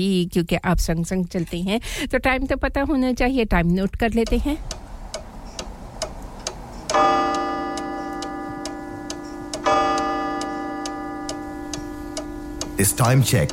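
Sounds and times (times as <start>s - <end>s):
speech: 0.0s - 4.8s, 12.8s - 13.5s
studio clock ticking: 4.0s - 13.5s.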